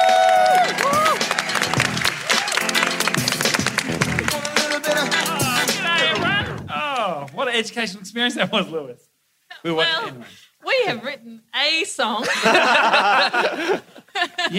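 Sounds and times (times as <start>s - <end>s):
whoops and cheering voices: 0.0s - 1.6s
audience applause: 0.0s - 7.3s
speech: 7.6s - 14.5s
laughter: 12.2s - 14.5s.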